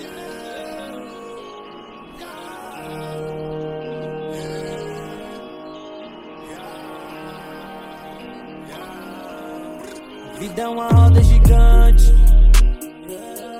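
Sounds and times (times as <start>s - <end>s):
deep bass: 10.9s - 12.8s.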